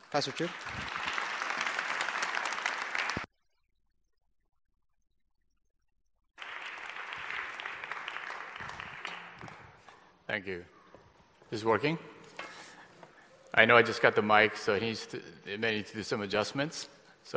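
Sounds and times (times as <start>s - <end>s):
audience applause welcoming a pastor as guest speaker: 0.0s - 3.3s, 6.4s - 10.1s
speech: 0.1s - 0.9s, 10.4s - 10.8s, 11.5s - 12.1s, 13.6s - 17.3s.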